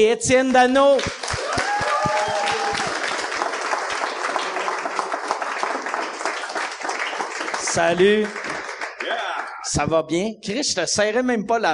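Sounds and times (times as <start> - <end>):
speech: 0.0 - 1.3, 7.7 - 8.4, 9.7 - 11.7
crowd applause for the guests: 1.0 - 9.5.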